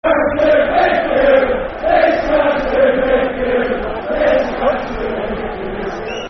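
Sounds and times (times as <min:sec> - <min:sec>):
football crowd chanting: 0:00.0 - 0:06.2.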